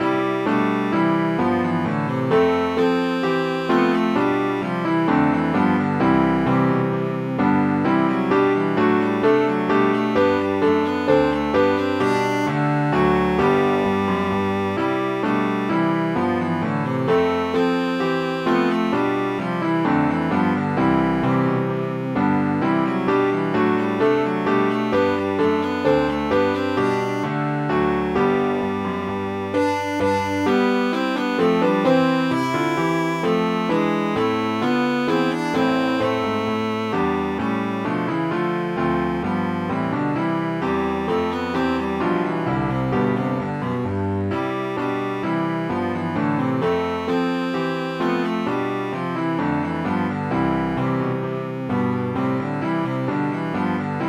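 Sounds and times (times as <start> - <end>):
cello playing a bourree: 0.0 - 54.0.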